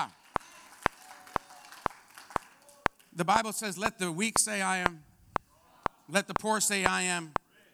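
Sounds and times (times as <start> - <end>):
audience hand clapping: 0.0 - 3.1
speech: 3.2 - 5.1, 6.1 - 7.4.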